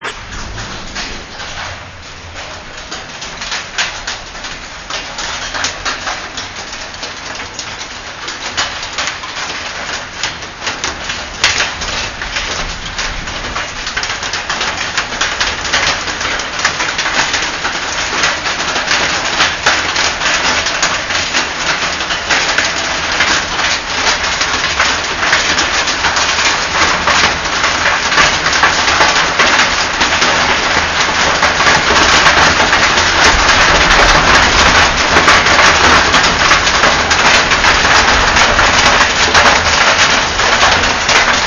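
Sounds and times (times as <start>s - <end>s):
rain in Kathmandu: 0.0s - 41.4s.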